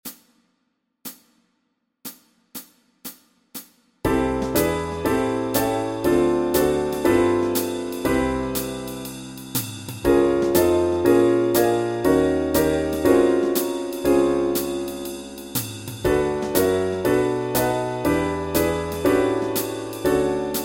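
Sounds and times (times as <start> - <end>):
walking bass backing track: 4.1 - 20.6.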